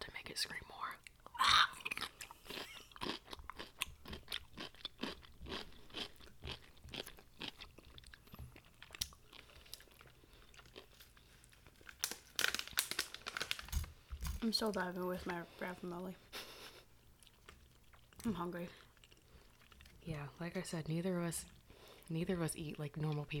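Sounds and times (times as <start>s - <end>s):
speech: 0.4s - 0.7s, 14.5s - 16.3s, 18.2s - 18.8s, 20.2s - 23.3s
crunchy pickle being bitten and chewed: 1.0s - 15.4s, 16.7s - 20.0s.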